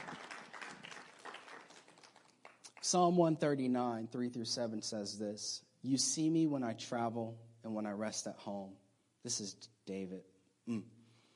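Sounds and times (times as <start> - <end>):
crowd applauding: 0.0 - 3.0
speech: 2.9 - 11.0.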